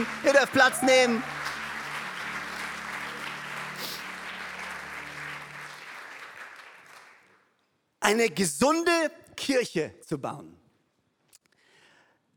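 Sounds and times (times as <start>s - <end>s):
speech: 0.0s - 1.4s, 8.1s - 10.6s
audience applause: 0.0s - 7.4s.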